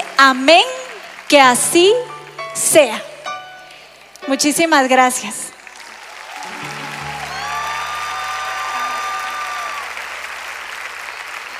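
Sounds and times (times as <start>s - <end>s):
applause: 0.0s - 2.4s, 5.5s - 11.5s
speech: 0.2s - 3.1s, 4.2s - 5.5s.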